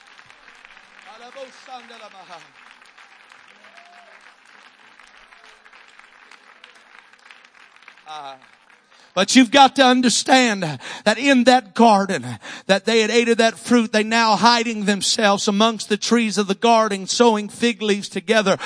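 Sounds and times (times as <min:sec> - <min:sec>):
audience clapping: 0:00.0 - 0:11.6
speech: 0:01.2 - 0:02.7, 0:08.1 - 0:08.6, 0:09.2 - 0:18.6.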